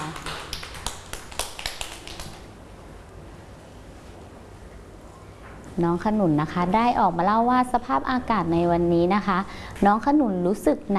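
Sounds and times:
children clapping hands: 0:00.0 - 0:02.5
speech: 0:05.8 - 0:10.9.

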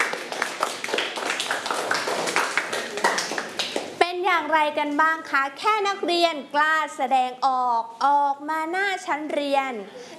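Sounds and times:
children clapping for a classmate: 0:00.0 - 0:03.9
speech: 0:04.5 - 0:10.0.

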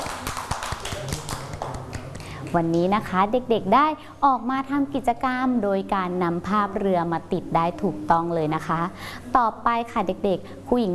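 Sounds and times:
children clapping for their classmates: 0:00.0 - 0:02.4
speech: 0:02.5 - 0:10.9.

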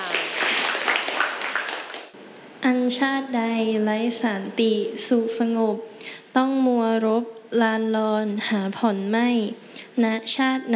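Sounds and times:
group clapping for a student: 0:00.0 - 0:02.2
speech: 0:02.6 - 0:10.7.

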